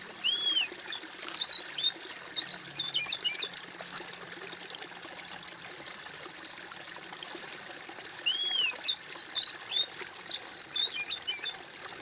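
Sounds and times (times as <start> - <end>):
bird whistled song: 0.2 - 3.5, 8.2 - 11.5.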